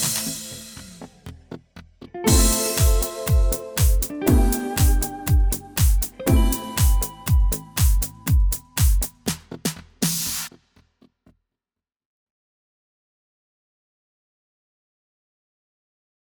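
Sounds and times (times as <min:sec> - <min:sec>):
spectral pizzicato: 0:02.2 - 0:08.3.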